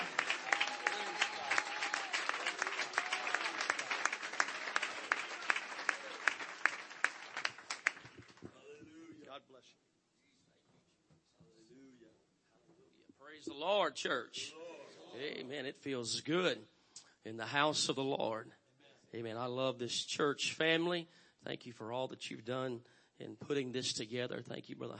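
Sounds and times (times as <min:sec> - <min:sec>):
crowd clapping hands: 0:00.0 - 0:08.6
speech: 0:13.5 - 0:14.6, 0:15.2 - 0:24.9.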